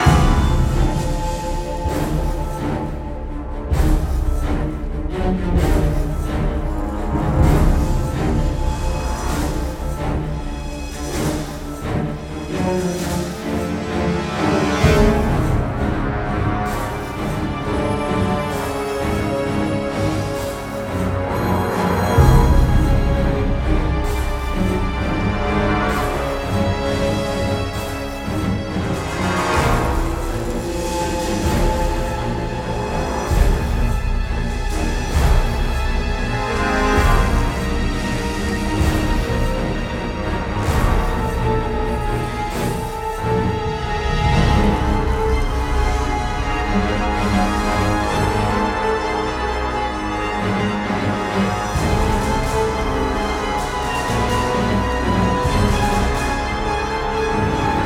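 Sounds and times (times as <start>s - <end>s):
classic horror sci-fi action music loop at 130 BPM: 0.0s - 57.8s.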